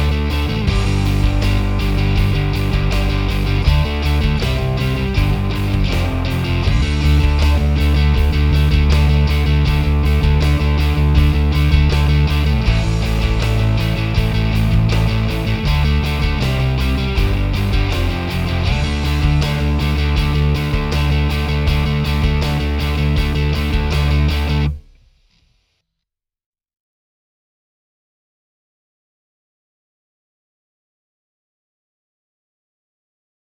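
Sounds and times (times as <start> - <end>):
backing track: 0.0 - 24.8.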